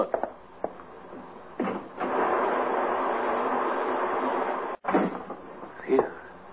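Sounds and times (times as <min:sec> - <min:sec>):
heavy rain falling outside: 0:01.8 - 0:04.8.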